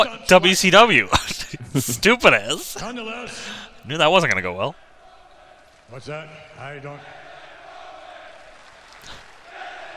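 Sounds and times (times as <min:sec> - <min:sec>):
speech: 0:00.0 - 0:04.8, 0:05.9 - 0:07.2
excited fans roaring in a WWE Raw wrestling arena: 0:04.1 - 0:09.9.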